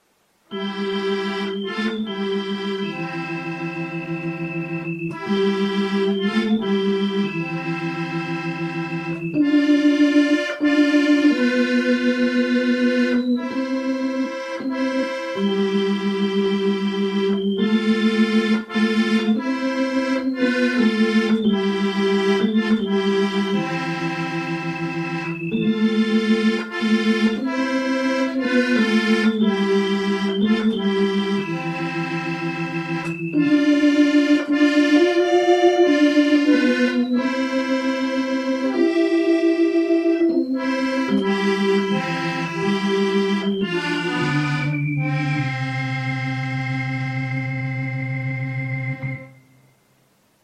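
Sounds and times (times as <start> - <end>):
soft keytar melody: 0.5 - 50.0.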